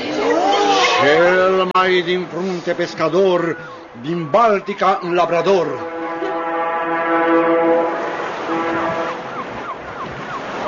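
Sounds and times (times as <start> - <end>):
surf: 0.0 - 10.6
wind: 0.0 - 10.6
speech: 1.0 - 5.9
ship's siren whistling: 3.5 - 10.6.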